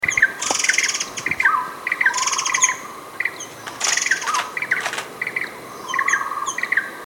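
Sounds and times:
white-rumped shama song: 0:00.0 - 0:06.9
buzzy insect-like sounds: 0:00.1 - 0:05.8
loud clicking: 0:03.6 - 0:05.1.

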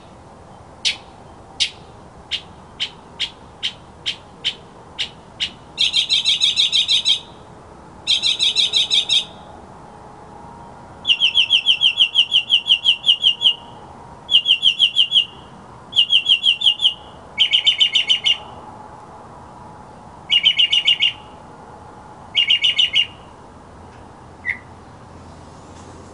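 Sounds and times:
mockingbird song: 0:00.9 - 0:07.4, 0:08.1 - 0:09.4, 0:11.1 - 0:13.7, 0:14.3 - 0:18.5, 0:20.3 - 0:21.3, 0:22.3 - 0:23.3, 0:24.4 - 0:24.7.

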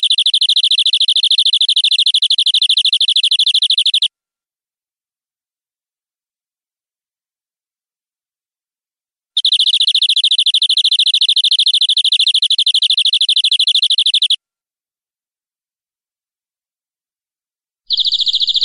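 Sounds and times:
canary singing long-duration rolling trill: 0:00.0 - 0:04.1, 0:09.4 - 0:14.4, 0:17.9 - 0:18.6.

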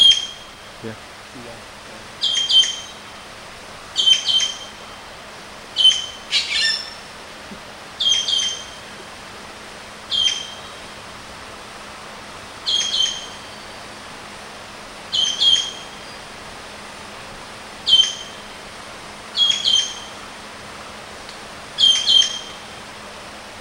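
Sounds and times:
Javan green magpie sharp shrill calls: 0:00.0 - 0:00.6, 0:02.2 - 0:03.0, 0:04.0 - 0:04.8, 0:05.8 - 0:07.0, 0:08.0 - 0:08.8, 0:10.1 - 0:10.8, 0:12.6 - 0:13.6, 0:15.1 - 0:16.2, 0:17.9 - 0:18.4, 0:19.3 - 0:20.2, 0:21.8 - 0:22.6.

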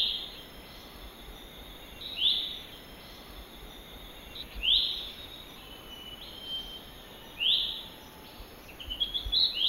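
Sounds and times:
lesser green leafbird giving whistled calls in the wild: 0:00.0 - 0:01.0, 0:01.6 - 0:09.6.

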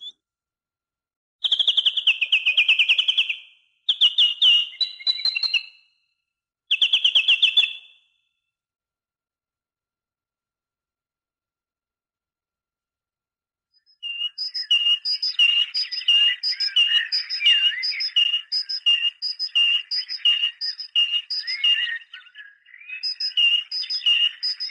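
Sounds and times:
great tit song: 0:00.0 - 0:00.2, 0:01.4 - 0:06.1, 0:06.7 - 0:08.4, 0:13.8 - 0:24.6.

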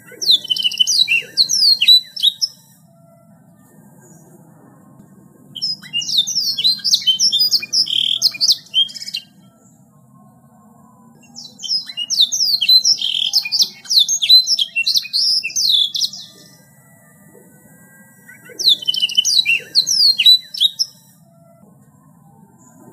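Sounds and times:
bird song of rapid high twittering and sweeping notes: 0:00.0 - 0:03.0, 0:05.6 - 0:10.0, 0:11.2 - 0:21.3
faint low hum: 0:00.0 - 0:12.0, 0:12.6 - 0:22.9.

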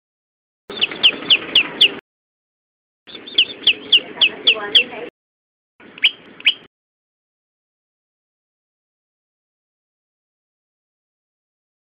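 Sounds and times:
prenjak lumut bird calling: 0:00.7 - 0:02.0, 0:03.1 - 0:05.0, 0:05.8 - 0:06.7.

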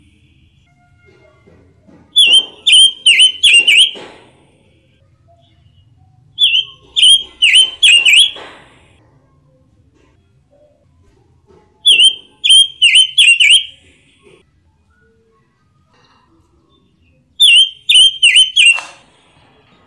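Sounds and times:
robin whistling song: 0:02.2 - 0:04.0, 0:06.4 - 0:08.4, 0:11.8 - 0:13.9, 0:17.1 - 0:19.0.

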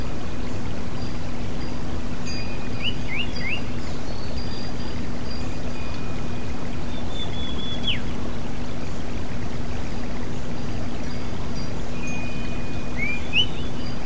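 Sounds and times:
water trickling: 0:00.0 - 0:14.0
kacer magpie robin singing: 0:02.4 - 0:04.7, 0:06.9 - 0:08.1, 0:12.1 - 0:14.0.

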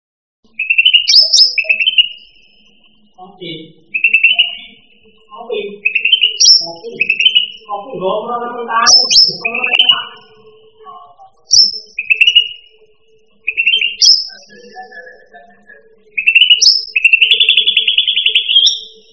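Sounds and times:
cucak rante song: 0:00.4 - 0:19.1.

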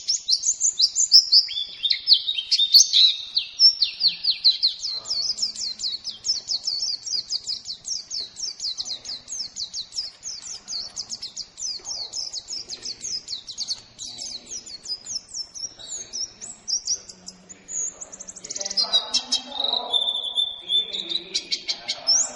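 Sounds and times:
lemon-bellied white-eye from Lombok twittering: 0:00.0 - 0:22.3.

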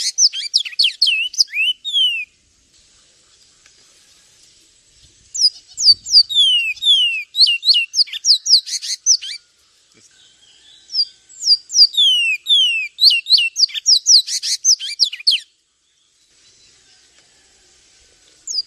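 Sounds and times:
Javan tesia piercing high chirps and falling whistles: 0:00.0 - 0:02.3, 0:05.4 - 0:09.4, 0:10.9 - 0:15.5, 0:18.5 - 0:18.6.

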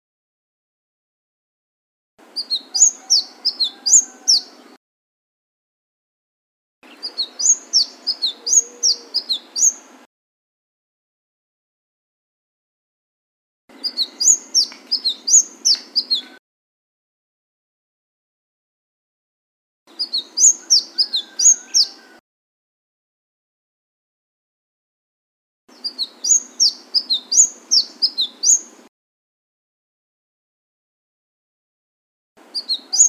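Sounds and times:
Flame-breasted sunbird song of shrill slurred chirps: 0:02.2 - 0:04.8, 0:06.8 - 0:10.1, 0:13.7 - 0:16.4, 0:19.9 - 0:22.2, 0:25.7 - 0:28.9, 0:32.4 - 0:33.0.

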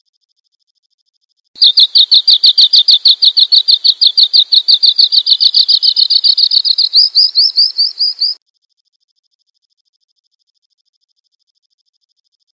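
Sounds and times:
bird chirping: 0:01.6 - 0:08.4.

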